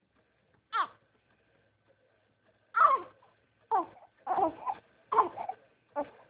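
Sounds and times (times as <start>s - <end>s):
hungry baby girl crying: 0.8s - 1.0s, 2.8s - 6.2s.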